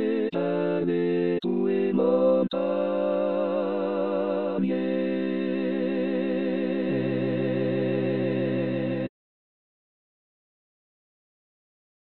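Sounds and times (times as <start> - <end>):
tutti ensemble playing a chorale: 0.0 - 9.1.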